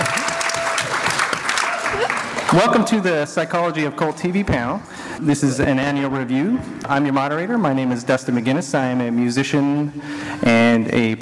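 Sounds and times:
audience applause: 0.0 - 3.0
speech: 2.5 - 11.1.

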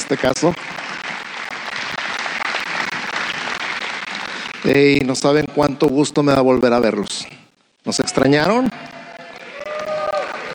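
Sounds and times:
audience applause: 0.0 - 5.9, 8.0 - 10.5
speech: 0.1 - 0.8, 4.6 - 8.8.

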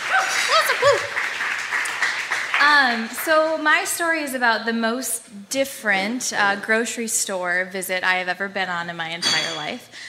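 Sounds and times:
audience round of applause: 0.0 - 3.5
speech: 0.6 - 1.2, 2.6 - 10.0.

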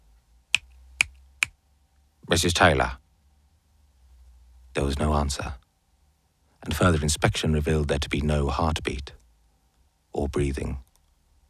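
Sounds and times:
finger snaps: 0.5 - 1.6
speech: 2.3 - 3.0, 4.8 - 5.6, 6.6 - 9.2, 10.1 - 10.9.

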